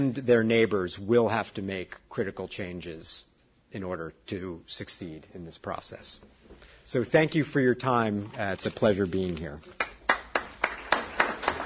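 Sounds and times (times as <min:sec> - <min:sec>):
speech: 0:00.0 - 0:09.9
slow hand claps: 0:09.8 - 0:11.6.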